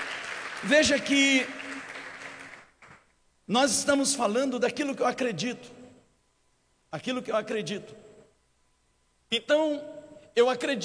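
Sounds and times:
audience applause: 0.0 - 3.0
speech: 0.6 - 1.6, 3.5 - 5.8, 6.9 - 8.0, 9.3 - 10.8.

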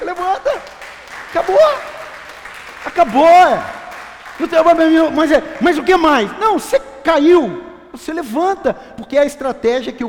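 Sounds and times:
audience applause: 0.0 - 6.2
speech: 0.1 - 2.0, 2.8 - 3.8, 4.4 - 10.0.

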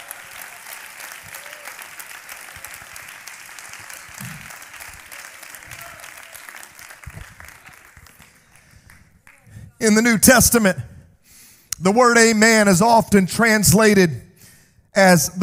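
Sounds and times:
audience clapping hands: 0.0 - 10.0
speech: 9.8 - 10.9, 11.8 - 14.2, 15.0 - 15.4.

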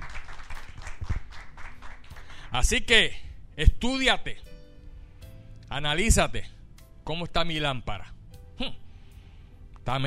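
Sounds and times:
church congregation applauding: 0.0 - 2.5
speech: 2.5 - 4.5, 5.7 - 6.5, 7.1 - 8.8, 9.8 - 10.0.

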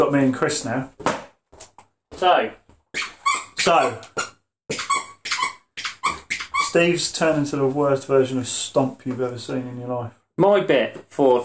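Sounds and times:
speech: 0.0 - 1.1, 2.2 - 4.8, 6.7 - 11.4
squeaky dog toy: 2.9 - 6.8.

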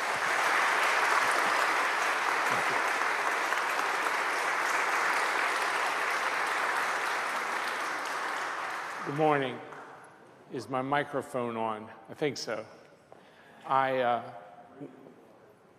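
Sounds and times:
audience applause welcoming a guest speaker: 0.0 - 9.9
speech: 9.1 - 9.7, 10.5 - 12.8, 13.6 - 15.1.

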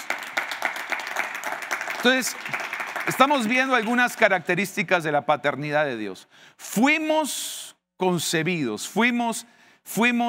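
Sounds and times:
audience applause: 0.0 - 4.5
speech: 2.0 - 10.2.

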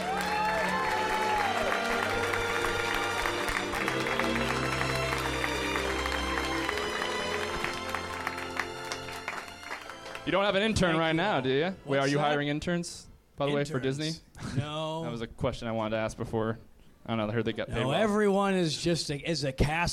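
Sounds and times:
audience applause and cheering: 0.0 - 11.2
speech: 10.3 - 19.9.

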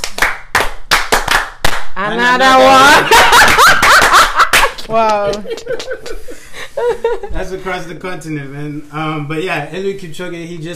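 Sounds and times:
hands clapping in rhythm: 0.0 - 6.2
speech: 2.0 - 3.8, 4.9 - 10.7
laughter: 2.4 - 7.8.

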